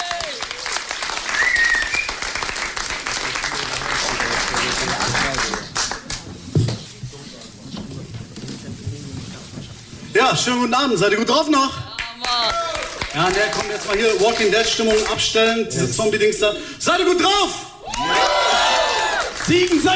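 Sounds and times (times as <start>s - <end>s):
audience applause: 0.0s - 6.5s, 12.0s - 15.4s, 17.8s - 19.9s
speech: 10.3s - 11.8s, 13.2s - 17.6s, 19.5s - 19.9s.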